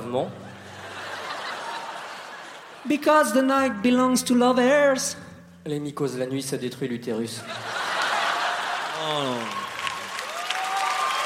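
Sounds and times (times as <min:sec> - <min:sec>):
speech: 0:00.1 - 0:00.4, 0:02.8 - 0:07.8, 0:09.0 - 0:09.6
laughter: 0:00.4 - 0:02.9, 0:07.4 - 0:10.1
audience applause: 0:07.6 - 0:11.2.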